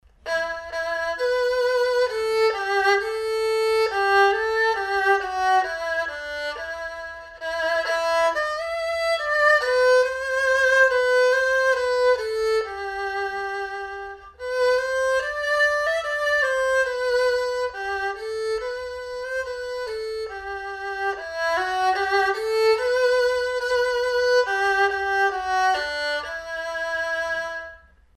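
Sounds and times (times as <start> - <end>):
erhu: 0.1 - 28.1.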